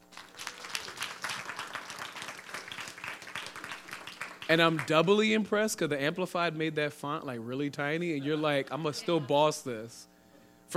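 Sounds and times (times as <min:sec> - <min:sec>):
audience applause: 0:00.0 - 0:05.2
speech: 0:04.5 - 0:10.1.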